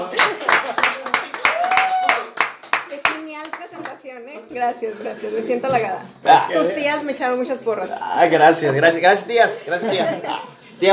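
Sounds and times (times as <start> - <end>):
audience applause: 0.0 - 3.2
speech: 4.5 - 10.9.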